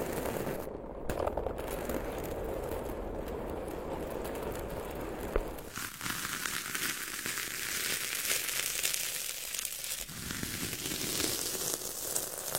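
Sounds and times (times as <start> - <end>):
rubbing crinkling and crackling from tapping smearing and tearing sounds: 0.0 - 12.5.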